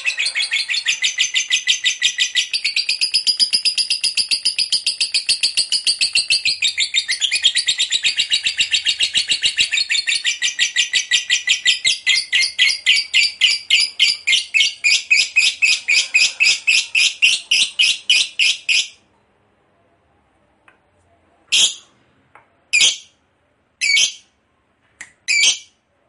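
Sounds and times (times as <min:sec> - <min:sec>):
lovebird chirps and long harsh chatter: 0:00.0 - 0:19.0, 0:21.5 - 0:21.9, 0:23.8 - 0:24.3, 0:25.2 - 0:25.8.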